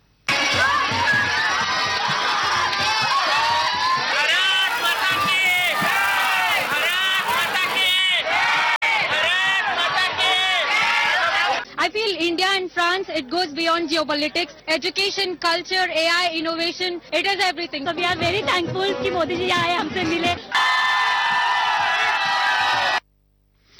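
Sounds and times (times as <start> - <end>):
crowd of Indian community members cheering to welcome Narendra Modi in Paris: 0.3 - 11.7, 18.1 - 23.0
speech: 12.1 - 20.7.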